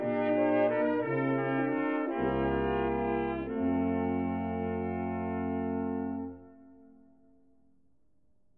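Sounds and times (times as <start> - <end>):
brass ensemble: 0.0 - 6.5.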